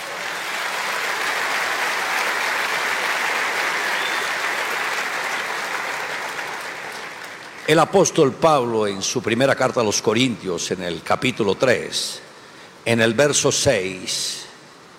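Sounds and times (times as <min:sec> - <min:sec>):
audience applause: 0:00.0 - 0:07.9
speech: 0:07.7 - 0:12.2, 0:12.8 - 0:14.4.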